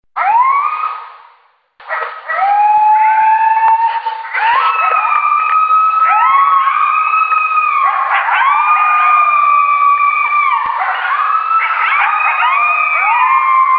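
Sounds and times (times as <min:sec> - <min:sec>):
coyote pack howling and yipping: 0:01.8 - 0:13.7.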